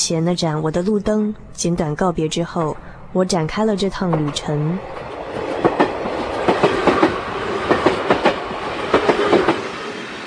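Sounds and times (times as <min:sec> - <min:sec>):
speech: 0:00.1 - 0:05.0
train rolling along the rails: 0:01.6 - 0:10.2
train wheels clickety-clack on track joints: 0:04.0 - 0:09.9.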